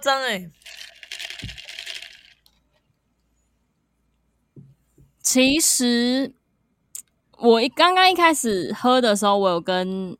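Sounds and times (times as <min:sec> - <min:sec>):
speech: 0:00.0 - 0:00.7, 0:05.3 - 0:06.4, 0:07.4 - 0:10.1
ice cubes clinking in a drink: 0:00.5 - 0:02.7.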